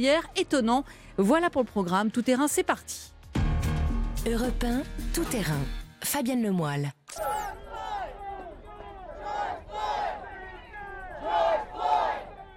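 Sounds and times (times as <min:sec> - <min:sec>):
speech: 0:00.0 - 0:03.2, 0:04.2 - 0:07.6
crowd chanting a name: 0:07.6 - 0:12.5.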